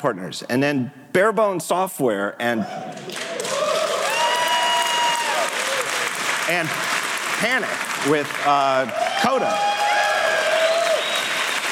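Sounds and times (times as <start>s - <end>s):
speech: 0.0s - 3.4s, 6.5s - 9.7s
audience applause at developer conference: 3.0s - 11.7s.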